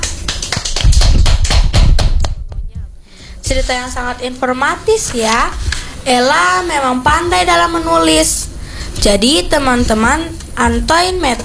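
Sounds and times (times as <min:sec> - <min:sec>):
applause: 0:00.0 - 0:02.4
speech: 0:03.5 - 0:08.4, 0:09.0 - 0:11.4.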